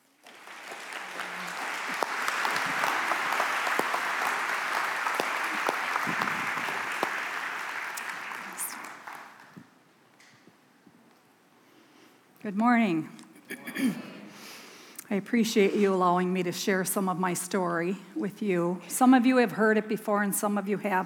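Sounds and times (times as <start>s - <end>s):
audience applause welcoming a speaker: 0.0s - 9.6s
speech: 12.5s - 14.1s, 15.1s - 21.0s.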